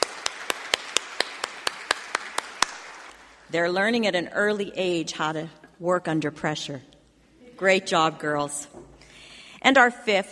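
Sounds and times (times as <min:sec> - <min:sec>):
round of applause: 0:00.0 - 0:03.2
speech: 0:03.5 - 0:06.9, 0:07.6 - 0:08.9, 0:09.6 - 0:10.3.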